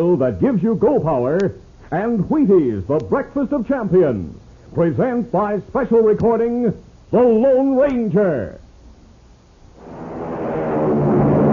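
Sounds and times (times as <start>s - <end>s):
speech: 0.0s - 8.6s
American Airlines flagship airliner taking off: 9.8s - 11.5s.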